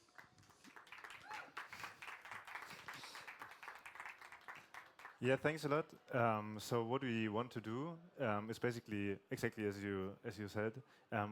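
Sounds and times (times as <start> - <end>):
audience applause: 0.0 - 5.4
speech: 5.2 - 11.2.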